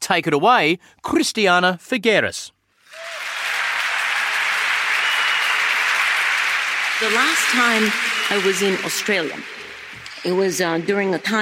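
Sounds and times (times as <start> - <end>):
speech: 0.1 - 3.3, 7.0 - 9.6, 10.2 - 11.4
massive round of applause: 2.8 - 11.4.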